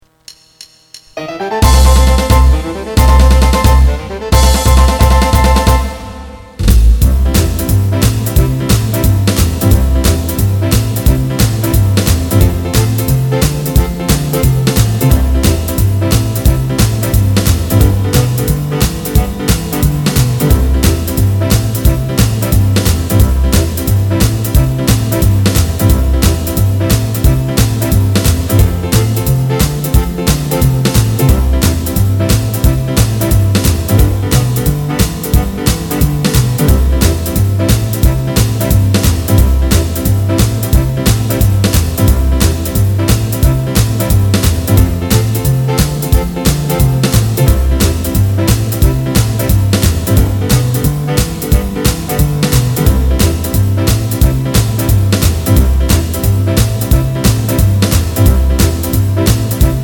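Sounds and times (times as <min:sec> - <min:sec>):
background music: 0:00.1 - 0:59.8.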